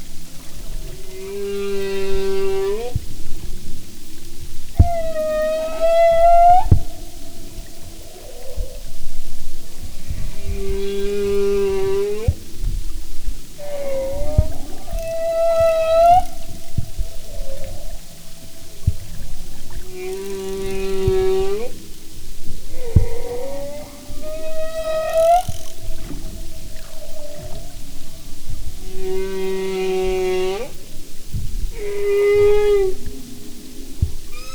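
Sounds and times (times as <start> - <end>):
humpback whale: 0.0 - 34.5.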